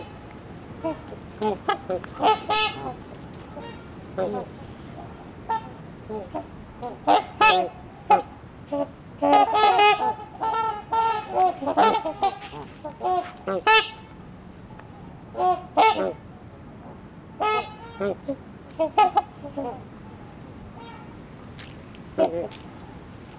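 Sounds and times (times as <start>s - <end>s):
Trumpeter Swan flock honking: 0.0s - 14.3s, 14.9s - 16.3s, 17.4s - 19.8s, 20.7s - 21.2s.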